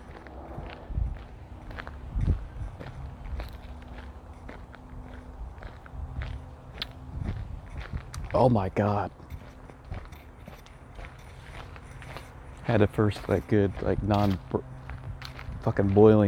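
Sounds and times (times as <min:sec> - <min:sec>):
low constant rumble: 0:00.0 - 0:12.6
footsteps crunching over gravel: 0:00.0 - 0:16.2
speech: 0:08.4 - 0:09.2, 0:12.7 - 0:14.7, 0:15.6 - 0:16.2.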